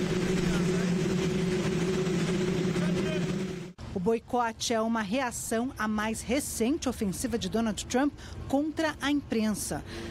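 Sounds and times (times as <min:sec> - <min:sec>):
helicopter noise distorting audio: 0:00.0 - 0:03.8
speech: 0:04.1 - 0:10.0.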